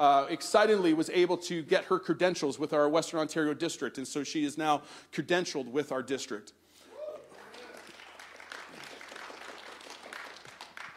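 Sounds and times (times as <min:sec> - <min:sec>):
speech: 0:00.0 - 0:06.6
audience clapping: 0:07.2 - 0:10.9.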